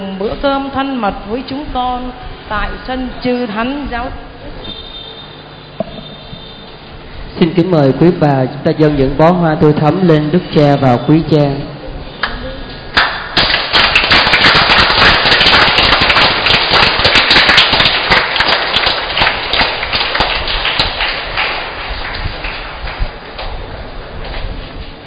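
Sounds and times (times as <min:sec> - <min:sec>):
speech: 0:00.2 - 0:04.3, 0:07.4 - 0:11.7
large crowd applauding: 0:12.9 - 0:23.5.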